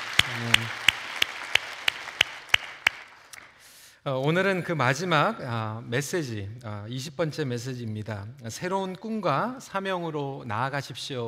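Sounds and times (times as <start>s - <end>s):
audience applause: 0.0s - 3.6s
speech: 4.0s - 11.2s.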